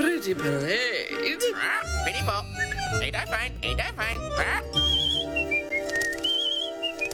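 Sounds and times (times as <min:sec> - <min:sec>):
speech: 0:00.2 - 0:05.0
cockatoo whistling: 0:04.7 - 0:07.1.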